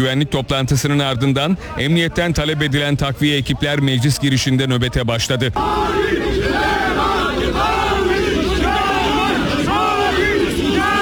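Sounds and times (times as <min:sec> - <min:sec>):
speech: 0:00.0 - 0:06.2
crowd shouting slogans during a scuffle: 0:05.6 - 0:11.0.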